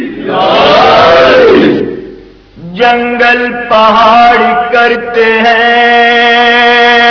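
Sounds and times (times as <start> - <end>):
crowd chanting a religious slogan praising Ali: 0.2 - 2.0
speech: 2.9 - 7.0.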